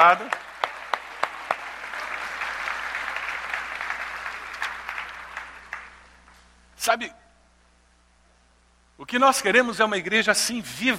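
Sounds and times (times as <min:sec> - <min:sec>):
speech: 0:00.0 - 0:00.4, 0:06.8 - 0:07.2, 0:09.0 - 0:10.9
audience applause: 0:00.0 - 0:06.1.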